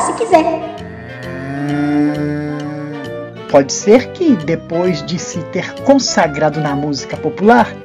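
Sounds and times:
speech: 0.2 - 0.8, 3.5 - 7.8
cow mooing: 0.6 - 3.4.

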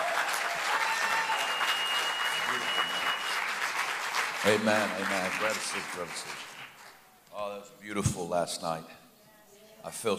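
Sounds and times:
audience applause at a church service welcoming a pastor: 0.0 - 7.1
speech: 4.4 - 6.5, 7.4 - 9.0, 9.8 - 10.1.

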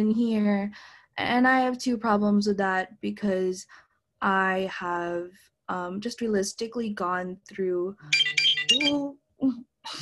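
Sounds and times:
speech: 0.0 - 10.0
phone ringtone: 8.0 - 9.1.

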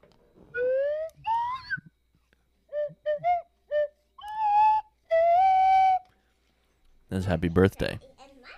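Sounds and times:
slide whistle being played: 0.5 - 2.1, 2.7 - 6.2
speech: 7.1 - 8.1.

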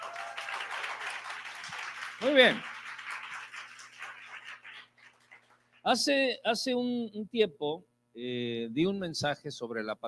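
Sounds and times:
congregation applause: 0.0 - 5.8
speech: 2.2 - 2.7, 5.8 - 10.0.

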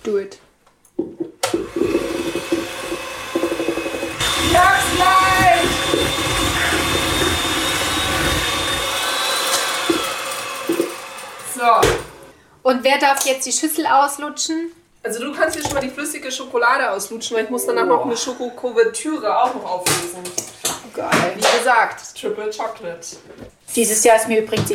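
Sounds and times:
speech: 0.1 - 0.5, 12.7 - 24.7
electric kitchen mixer whirring: 1.4 - 12.3.

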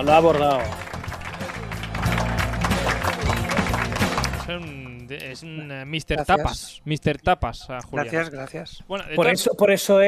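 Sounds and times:
speech: 0.0 - 0.8, 4.5 - 10.0
applause: 0.0 - 5.1.

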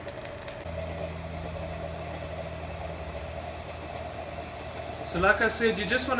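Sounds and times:
coffee bubbling through a sieve filter: 0.0 - 6.1
speech: 5.1 - 6.1.

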